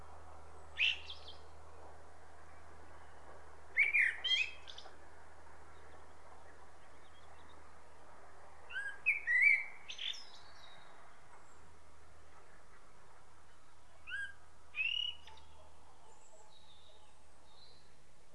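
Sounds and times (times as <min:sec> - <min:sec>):
common blackbird singing: 0:00.8 - 0:01.4, 0:03.8 - 0:04.9, 0:08.7 - 0:10.9, 0:13.5 - 0:17.9.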